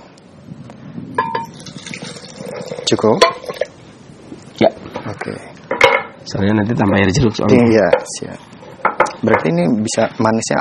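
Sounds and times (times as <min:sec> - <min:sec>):
low busy noise: 0:00.0 - 0:10.5
glass or utensil clinking against a container: 0:01.2 - 0:03.7
speech: 0:02.9 - 0:03.4, 0:06.3 - 0:08.6, 0:09.2 - 0:10.5.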